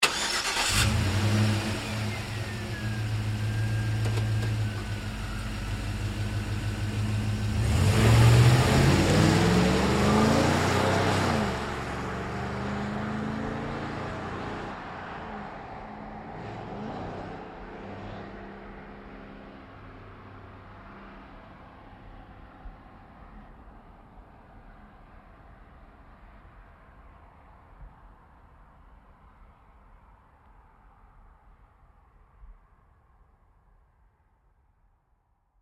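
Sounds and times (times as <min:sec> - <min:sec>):
GMC Savana truck starting and pulling away fast: 0:00.0 - 0:14.8.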